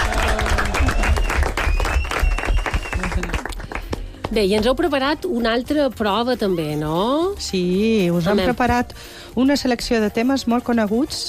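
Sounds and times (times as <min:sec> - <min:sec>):
crowd applauding: 0:00.0 - 0:04.1
faint high whistle-like tone: 0:00.9 - 0:03.0
speech: 0:04.3 - 0:11.2.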